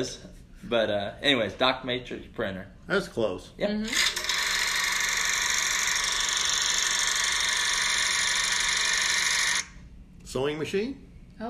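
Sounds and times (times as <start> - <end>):
speech: 0.0 - 4.2, 10.3 - 11.4
16-millimeter film projector running: 3.8 - 9.9.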